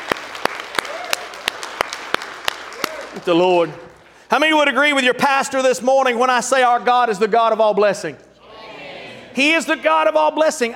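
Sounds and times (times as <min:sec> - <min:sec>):
audience hand claps in worship: 0:00.0 - 0:03.3
scattered applause: 0:00.0 - 0:03.4
speech: 0:03.2 - 0:08.3, 0:09.4 - 0:10.7.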